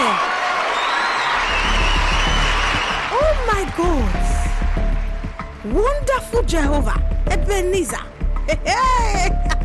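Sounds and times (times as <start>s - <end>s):
audience applause and cheering at a church gathering: 0.0s - 6.4s
speech: 5.6s - 9.5s.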